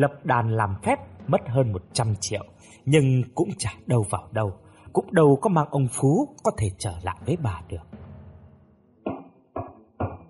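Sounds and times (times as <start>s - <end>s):
speech: 0.0s - 8.0s
firm knocking on a room door: 9.0s - 10.2s.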